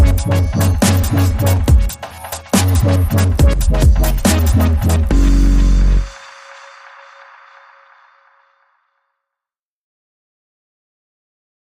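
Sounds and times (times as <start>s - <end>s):
short wobble bass: 0.0s - 1.9s, 2.6s - 6.1s.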